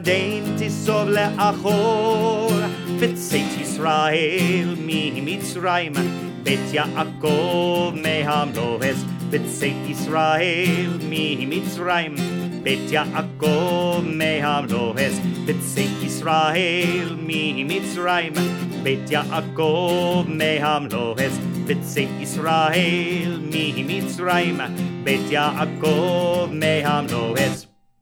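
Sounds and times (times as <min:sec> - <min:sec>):
guitar playing a psalm for Passover: 0:00.0 - 0:27.9.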